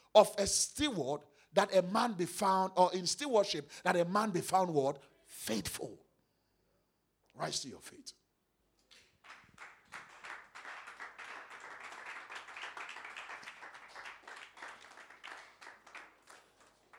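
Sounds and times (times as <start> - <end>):
speech: 0.2 - 6.0, 7.4 - 8.2
sparse clapping from a few people: 8.9 - 16.9.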